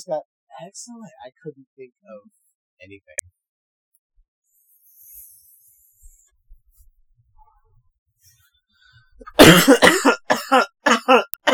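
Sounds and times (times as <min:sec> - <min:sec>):
speech: 0:00.0 - 0:03.4, 0:09.2 - 0:11.5
person coughing after a vape hit goes down wrong: 0:09.3 - 0:11.5.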